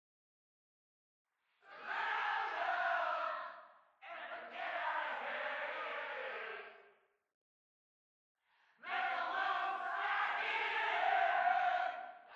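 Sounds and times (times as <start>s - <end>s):
crowd: 1.6s - 7.1s, 8.5s - 12.3s.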